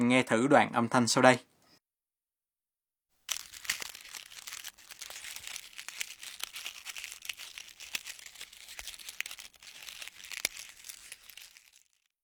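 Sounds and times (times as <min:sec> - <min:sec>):
speech: 0:00.1 - 0:01.5
biting into thin crispy toasted seaweed: 0:03.3 - 0:12.1.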